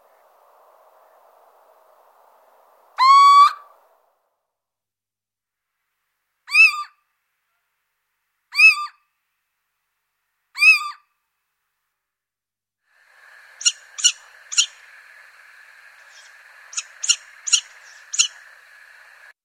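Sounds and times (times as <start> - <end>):
Little owl whistled call: 3.0 - 3.8, 6.5 - 7.0, 8.6 - 9.0, 10.6 - 11.0, 13.6 - 14.9, 15.9 - 19.2.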